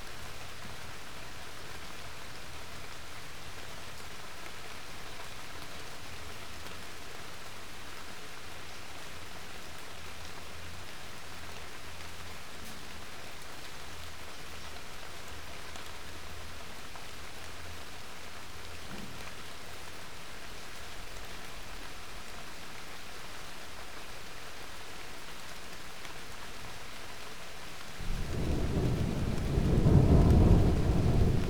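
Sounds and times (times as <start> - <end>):
rain: 0.0 - 31.4
thunder: 28.0 - 31.4.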